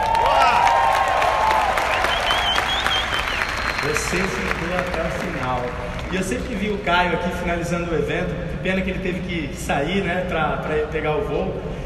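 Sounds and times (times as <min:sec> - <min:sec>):
audience applause: 0:00.0 - 0:06.7
tonal whistle-like sounds: 0:01.9 - 0:04.1
speech: 0:04.1 - 0:11.8.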